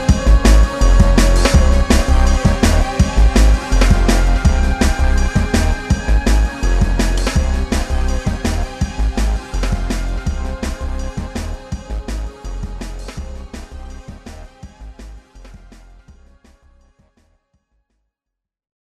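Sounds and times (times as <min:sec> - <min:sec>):
drums: 0:00.0 - 0:17.2.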